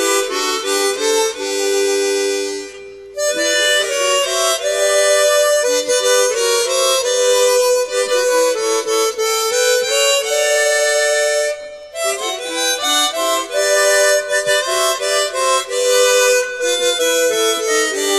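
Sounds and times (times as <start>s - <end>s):
chromatic harmonica playing hymns: 0.0s - 18.1s.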